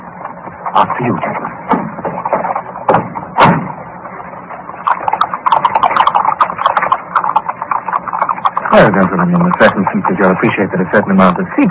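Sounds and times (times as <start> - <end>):
horse-drawn four-wheeler cab hooves clip-clopping: 0.3 - 3.8, 4.5 - 11.6
sharp thumps: 0.5 - 10.4
speech: 0.7 - 1.6, 8.7 - 11.6
horse-drawn cab rolling: 4.6 - 11.6.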